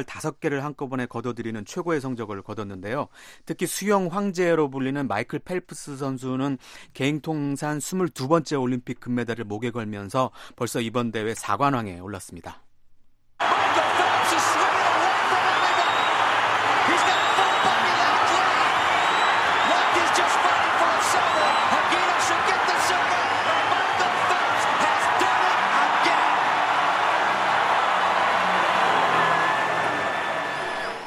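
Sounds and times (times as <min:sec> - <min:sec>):
speech: 0:00.0 - 0:12.6
people shouting: 0:13.4 - 0:31.0
stadium crowd cheering at Olympic swimming final: 0:13.4 - 0:31.0
whistles: 0:13.4 - 0:31.0.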